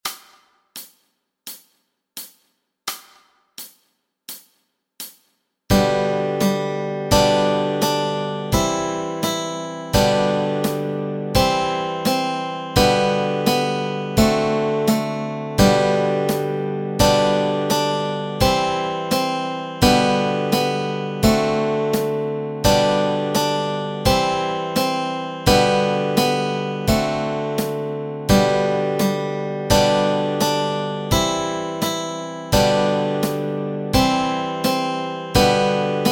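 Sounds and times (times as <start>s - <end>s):
nursery melody with chords: 5.7s - 36.1s.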